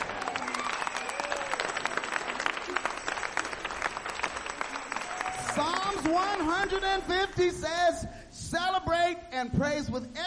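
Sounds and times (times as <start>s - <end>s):
audience clapping: 0.0s - 7.6s
speech: 5.6s - 10.2s.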